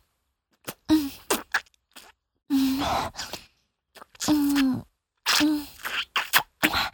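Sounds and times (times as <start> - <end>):
fellatio with tongue moving: 0.6 - 2.2, 3.2 - 6.8.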